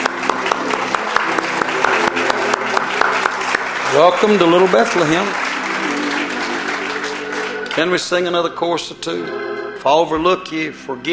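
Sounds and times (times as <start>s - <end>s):
audience applauding: 0.0s - 8.5s
speech: 4.0s - 5.4s, 7.8s - 11.1s.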